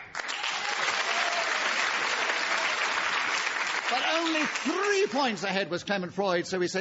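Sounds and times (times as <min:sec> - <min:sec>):
audience applause: 0:00.0 - 0:05.4
speech: 0:03.9 - 0:06.7.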